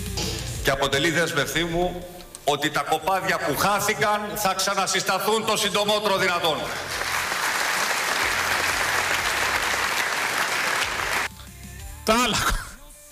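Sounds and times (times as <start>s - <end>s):
speech: 0.7s - 7.1s, 12.0s - 12.6s
audience applause: 6.8s - 11.3s.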